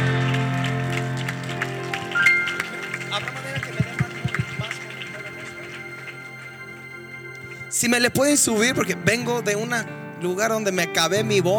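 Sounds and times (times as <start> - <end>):
applause: 0.0 - 7.8
speech: 7.8 - 11.5.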